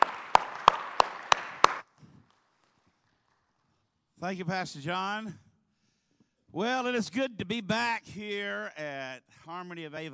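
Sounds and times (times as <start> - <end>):
audience at a church gathering applauding: 0.0 - 3.7
speech: 4.2 - 5.4, 6.6 - 10.1.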